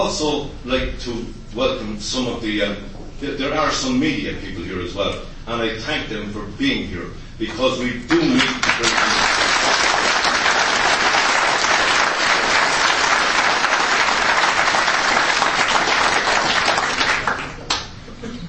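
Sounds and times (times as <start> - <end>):
speech: 0.1 - 9.4
audience round of applause: 8.4 - 18.0.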